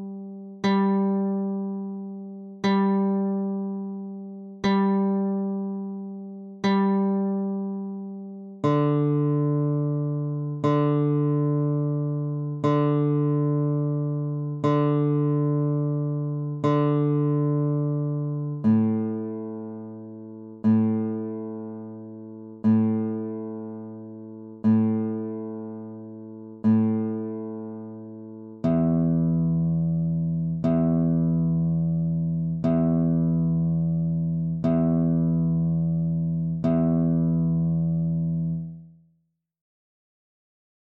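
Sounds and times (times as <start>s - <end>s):
guitar tuner tone: 0.0s - 39.0s.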